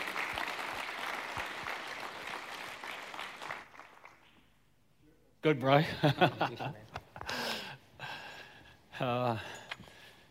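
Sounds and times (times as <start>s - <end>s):
audience applause welcoming a guest speaker: 0.0s - 4.3s
speech: 5.4s - 6.9s, 9.0s - 9.6s
laughter: 5.8s - 7.8s.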